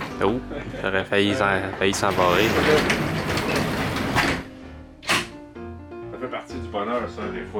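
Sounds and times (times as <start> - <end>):
speech: 0.2 - 3.0, 7.1 - 7.5
door pushed shut: 2.0 - 5.4.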